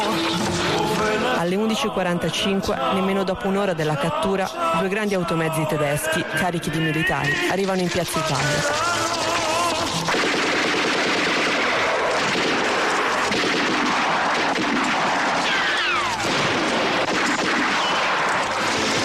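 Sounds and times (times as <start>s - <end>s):
gunfire and artillery in battle: 0.0s - 1.6s, 7.1s - 19.0s
speech: 1.4s - 9.1s.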